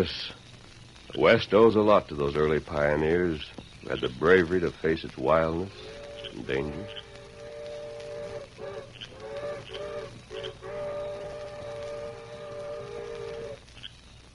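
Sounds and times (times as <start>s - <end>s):
speech: 0.0s - 0.4s, 1.1s - 7.0s
train whistle: 5.7s - 13.6s.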